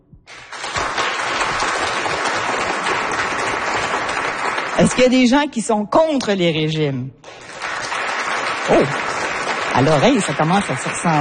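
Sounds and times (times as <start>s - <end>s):
audience applause in a hall: 0.3s - 5.2s, 7.2s - 11.1s
speech: 4.8s - 7.4s, 8.7s - 9.0s, 9.8s - 11.1s.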